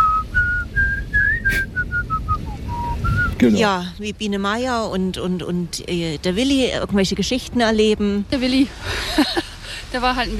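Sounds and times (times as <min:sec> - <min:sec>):
whistled theme song melody: 0:00.0 - 0:03.4
low rumble: 0:00.0 - 0:10.3
speech: 0:03.4 - 0:10.3.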